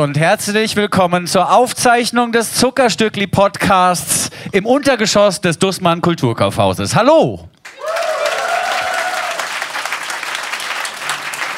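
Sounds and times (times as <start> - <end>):
speech: 0.0 - 7.5
vocal whoops: 7.7 - 9.7
audience applause at a live recording event in a department store basement: 7.7 - 11.5.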